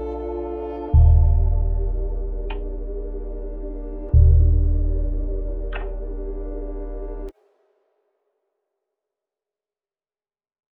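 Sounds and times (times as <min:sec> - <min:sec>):
melody in A sharp major at 75 BPM: 0:00.0 - 0:07.3.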